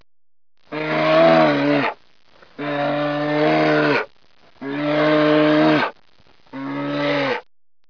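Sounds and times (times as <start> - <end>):
bear growling: 0.7 - 2.0, 2.6 - 7.5.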